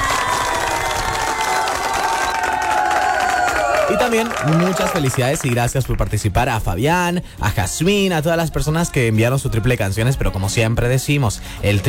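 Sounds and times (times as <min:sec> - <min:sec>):
crowd whooping and shouting: 0:00.0 - 0:05.4
crowd clapping: 0:00.0 - 0:06.3
speech: 0:04.0 - 0:11.8.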